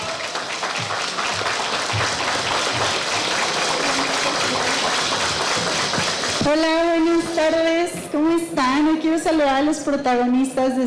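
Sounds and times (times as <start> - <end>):
crowd applauding: 0.0 - 7.8
speech: 6.5 - 10.8.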